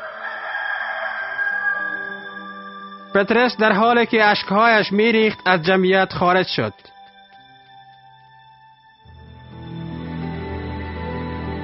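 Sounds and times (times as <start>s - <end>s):
rooster crowing: 0.0s - 3.1s
speech: 3.1s - 7.0s.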